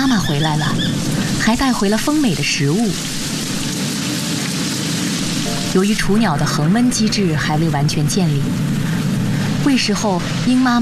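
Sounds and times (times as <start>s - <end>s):
steady rain in a forest: 0.0s - 10.8s
speech: 0.4s - 3.2s, 5.7s - 9.0s, 9.6s - 10.8s.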